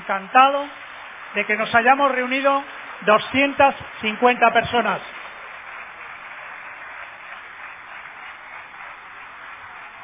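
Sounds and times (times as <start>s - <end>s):
speech: 0.1s - 5.2s
crowd audience applause: 4.8s - 10.0s.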